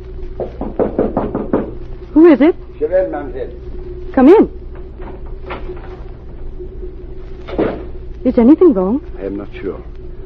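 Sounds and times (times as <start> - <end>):
knocking on a hotel suite door: 0.4 - 1.9
speech: 2.2 - 4.6, 8.2 - 10.0.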